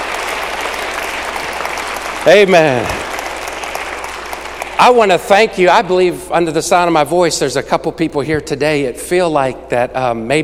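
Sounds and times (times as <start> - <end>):
audience applause: 0.0 - 5.5
speech: 2.2 - 3.0, 4.8 - 10.4.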